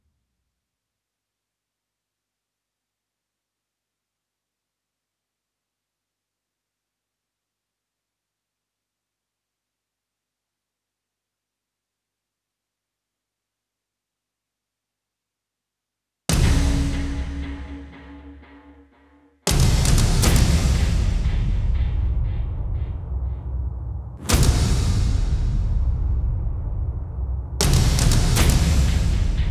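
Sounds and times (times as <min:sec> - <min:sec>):
drum mix: 0:16.3 - 0:29.4.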